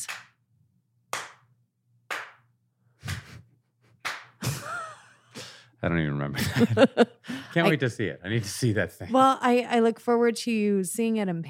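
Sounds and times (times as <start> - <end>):
slow judge-style hand claps: 0.0 - 0.4, 1.1 - 1.5, 2.1 - 2.5, 4.0 - 4.7
laughter: 4.4 - 5.2, 6.3 - 8.7
speech: 5.8 - 11.4.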